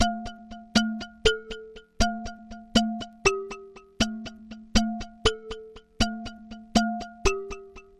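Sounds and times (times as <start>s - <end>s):
ambient house percussion at 120 BPM: 0.0s - 7.9s.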